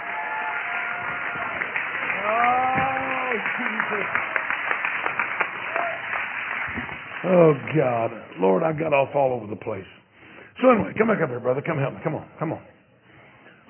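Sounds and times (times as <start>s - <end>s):
audience clapping and shouting: 0.0s - 8.2s
speech: 3.4s - 4.4s, 7.2s - 10.0s, 10.6s - 12.7s.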